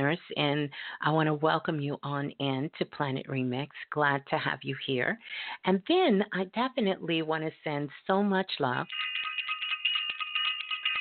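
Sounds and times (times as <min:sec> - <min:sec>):
speech: 0:00.0 - 0:09.6
bell ringing with bright high metallic tones: 0:08.9 - 0:11.0.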